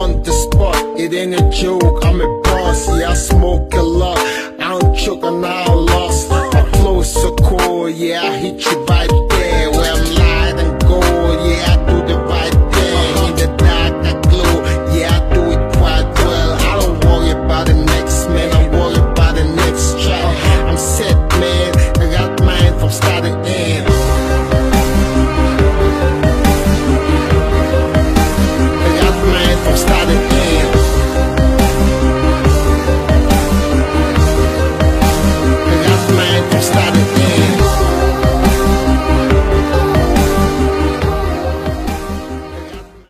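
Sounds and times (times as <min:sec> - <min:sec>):
dubstep music: 0:00.0 - 0:43.0.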